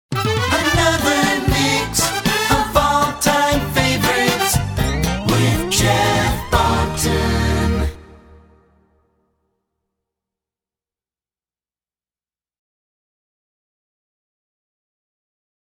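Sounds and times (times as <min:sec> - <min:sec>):
song: 0:00.1 - 0:09.0.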